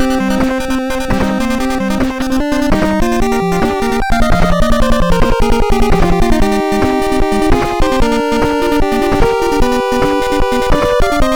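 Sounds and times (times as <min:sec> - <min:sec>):
chiptune game console audio from an FPGA: 0:00.0 - 0:11.3.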